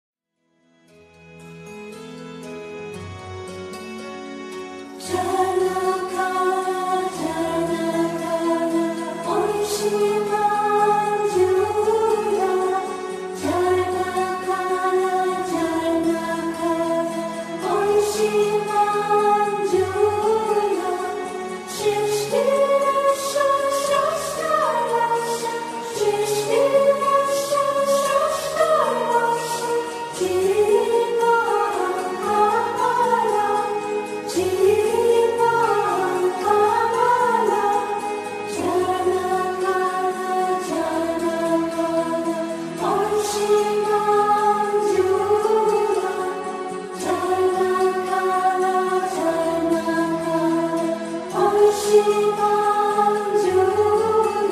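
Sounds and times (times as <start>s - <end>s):
bhajan singers singing bhajans: 5.0s - 54.5s.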